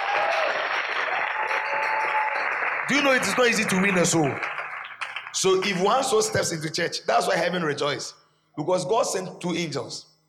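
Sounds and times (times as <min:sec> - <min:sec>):
crowd clapping: 0:00.0 - 0:06.8
speech: 0:02.9 - 0:04.6, 0:05.4 - 0:10.1.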